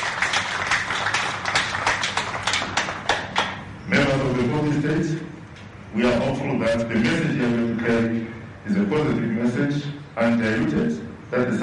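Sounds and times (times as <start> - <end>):
audience applause: 0.0 - 3.6
speech: 4.8 - 11.6.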